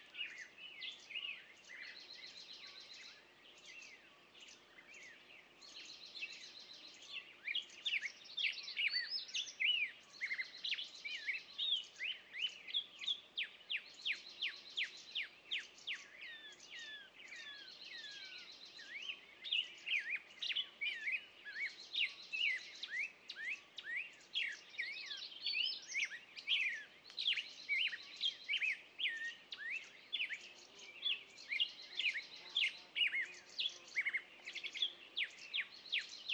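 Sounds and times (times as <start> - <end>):
birds in the morning on a meadow: 0.0 - 36.3.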